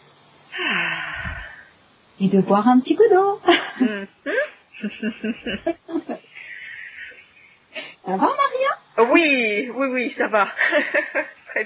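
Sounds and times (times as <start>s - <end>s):
deep breath in during a guided self-acceptance exercise: 0.5s - 1.8s
speech: 2.2s - 6.2s, 8.1s - 11.6s.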